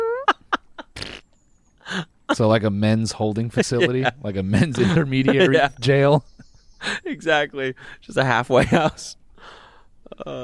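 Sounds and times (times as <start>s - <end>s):
cartoon fart sound effect: 1.0s - 1.2s
speech: 2.0s - 6.3s, 7.1s - 10.4s
laughter: 3.4s - 6.2s, 6.8s - 7.3s, 8.4s - 9.1s.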